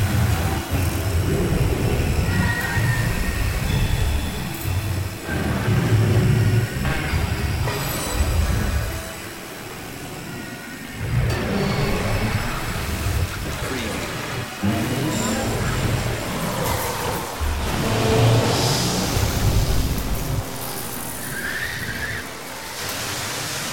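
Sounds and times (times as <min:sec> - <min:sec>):
turbulent sci-fi background: 0:00.0 - 0:23.7.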